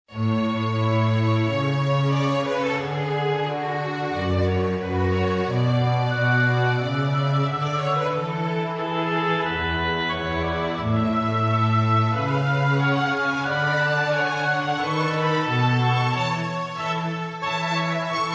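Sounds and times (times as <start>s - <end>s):
sonata in D major: 0.1s - 18.3s.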